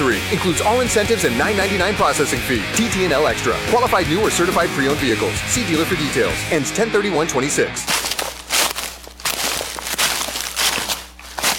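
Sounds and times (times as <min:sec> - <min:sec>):
speech: 0:00.2 - 0:08.2
footsteps crunching through dry leaves: 0:07.8 - 0:11.5.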